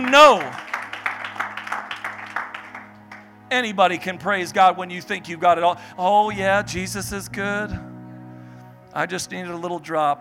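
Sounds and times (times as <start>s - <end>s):
audience clapping: 0.0s - 3.4s
speech: 0.1s - 0.6s, 3.5s - 7.9s, 9.0s - 10.1s.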